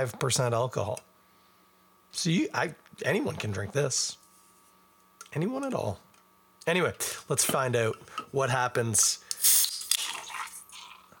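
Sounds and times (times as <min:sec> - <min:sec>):
speech: 0:00.0 - 0:01.1, 0:02.1 - 0:04.2, 0:05.3 - 0:06.0, 0:06.6 - 0:09.7
can of Guinness cracking open with fizzing foaming hiss: 0:09.3 - 0:10.8.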